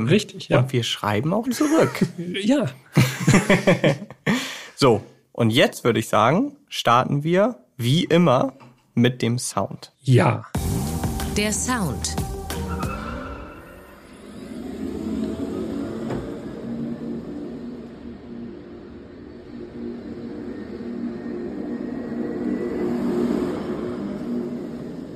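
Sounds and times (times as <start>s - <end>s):
speech: 0.0s - 4.2s, 4.8s - 10.7s, 11.4s - 12.2s
laughter: 1.5s - 4.5s
electric car driving with a synthetic spacey whirring hum: 13.6s - 25.1s.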